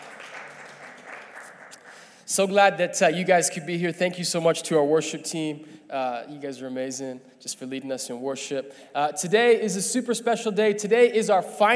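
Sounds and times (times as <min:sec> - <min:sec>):
audience clapping hands: 0:00.0 - 0:02.3
speech: 0:02.3 - 0:11.7.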